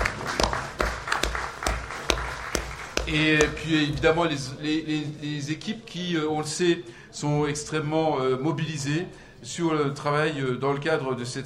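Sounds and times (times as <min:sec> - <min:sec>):
audience applause: 0:00.0 - 0:03.6
speech: 0:03.1 - 0:11.4.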